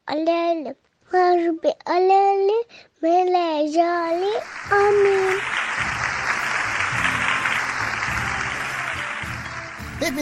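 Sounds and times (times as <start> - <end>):
speech: 0.1 - 6.0, 10.0 - 10.2
applause: 4.3 - 10.2.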